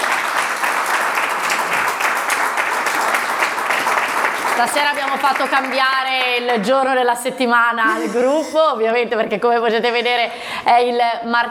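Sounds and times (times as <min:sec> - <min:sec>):
audience applause: 0:00.0 - 0:06.6
speech: 0:04.6 - 0:11.5.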